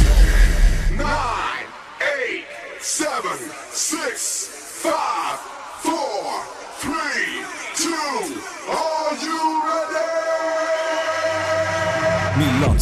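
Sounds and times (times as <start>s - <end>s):
deep bass burst: 0.0s - 1.3s
crowd cheering and yelling: 0.0s - 12.8s.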